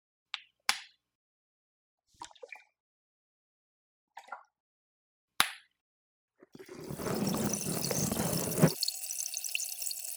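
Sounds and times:
fizzing bubble water in ear canal: 6.6s - 10.1s
wet clicks and drips: 6.7s - 10.1s.

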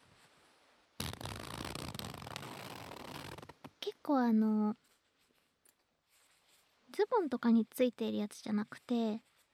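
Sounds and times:
cheap lightweight zipper of a kigurumi costume being pulled: 1.0s - 3.8s
speech: 4.0s - 4.9s, 7.1s - 9.3s.

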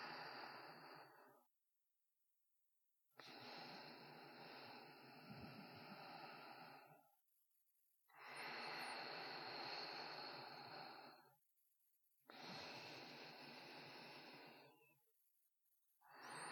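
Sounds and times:
sparse sleeping breaths: 0.0s - 1.5s, 3.2s - 7.1s, 8.1s - 11.4s, 12.3s - 15.0s, 16.0s - 16.5s.

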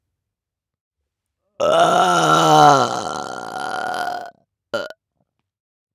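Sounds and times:
person burping: 1.6s - 4.9s.

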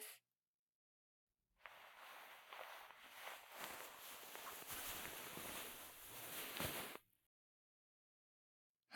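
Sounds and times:
ASMR ear cleaning in the right ear: 1.7s - 7.0s.

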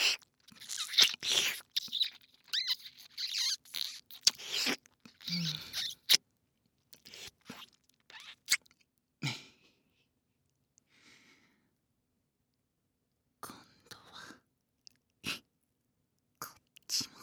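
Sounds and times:
ear licking: 0.0s - 6.2s.

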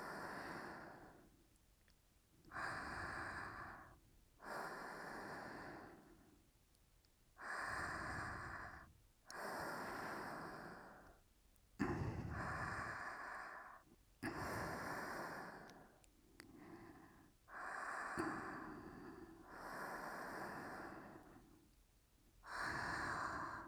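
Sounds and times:
sleeping breath: 2.5s - 6.3s, 7.4s - 11.2s, 11.8s - 21.5s, 22.4s - 23.6s.

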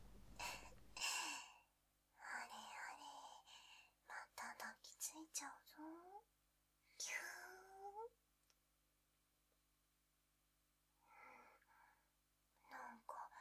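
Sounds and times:
sweet ASMR whispering: 0.3s - 1.6s, 2.2s - 6.3s, 6.9s - 8.1s, 12.6s - 13.3s.

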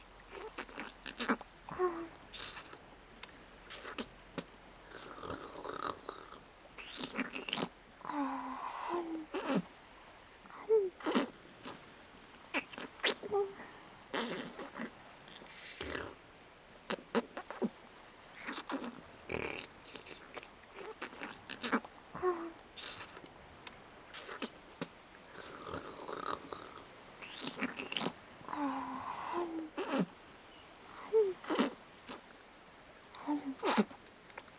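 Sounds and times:
waves on a shore: 0.0s - 34.5s
sticky mouth sounds: 0.3s - 2.8s, 3.7s - 9.7s, 10.5s - 11.8s, 12.5s - 16.2s, 18.4s - 23.2s, 24.2s - 30.1s, 31.0s - 32.3s, 33.1s - 34.5s.

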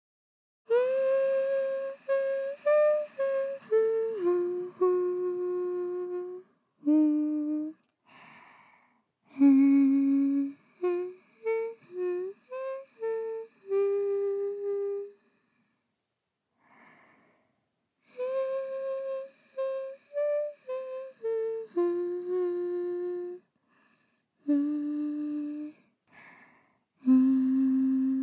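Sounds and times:
person singing a lullaby: 0.7s - 7.8s, 9.3s - 15.3s, 18.0s - 23.5s, 24.4s - 26.4s, 27.0s - 28.2s.

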